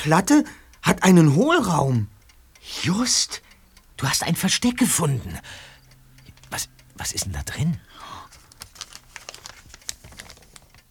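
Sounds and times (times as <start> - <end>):
speech: 0.0 - 3.4, 4.0 - 5.7, 6.5 - 8.2
small paper envelope handled in a hidden floor-plate compartment: 8.3 - 10.8.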